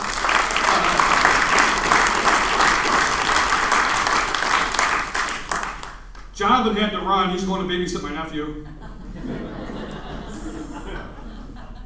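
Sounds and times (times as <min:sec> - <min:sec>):
laughter: 0:00.0 - 0:04.1, 0:08.4 - 0:11.8
crowd applauding for comedians: 0:00.0 - 0:06.3
speech: 0:06.4 - 0:09.4.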